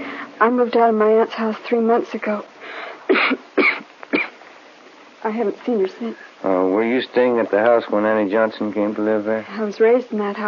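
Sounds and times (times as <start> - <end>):
speech: 0.4 - 3.7, 5.2 - 10.4
woman coughing harsh chesty bursts: 3.1 - 4.4.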